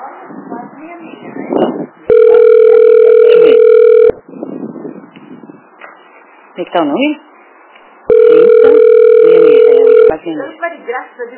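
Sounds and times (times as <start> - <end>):
unanswered telephone call ringback tone: 2.1 - 4.2, 8.1 - 10.2
speech: 6.6 - 7.2.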